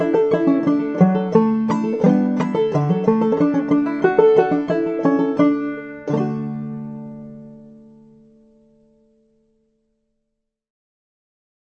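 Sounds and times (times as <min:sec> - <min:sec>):
banjo playing in aDADE tuning: 0:00.0 - 0:08.7.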